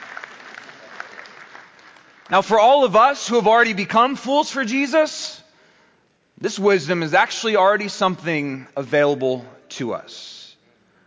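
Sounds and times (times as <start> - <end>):
audience applause: 0.0 - 2.4
speech: 2.3 - 5.4, 6.4 - 10.4.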